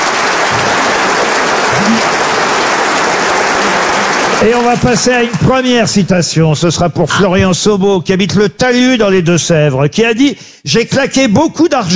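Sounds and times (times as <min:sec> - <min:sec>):
studio audience applause: 0:00.0 - 0:06.4
speech: 0:04.4 - 0:11.9.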